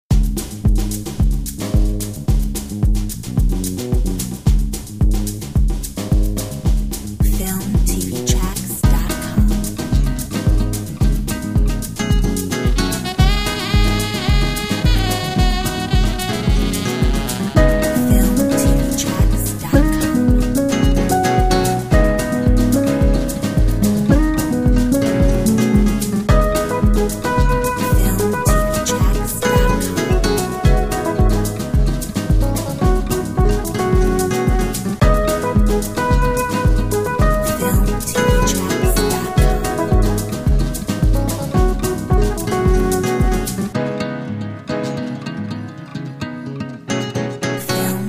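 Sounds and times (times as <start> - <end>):
jazzy bossa nova: 0.1 - 48.0.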